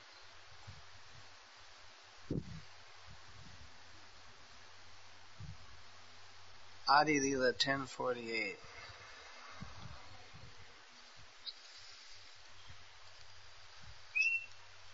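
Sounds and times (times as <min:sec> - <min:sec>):
speech: 0:02.3 - 0:02.7, 0:06.9 - 0:08.7
sharp whistled bird note: 0:14.1 - 0:14.5
faint bird chirps: 0:14.1 - 0:14.6.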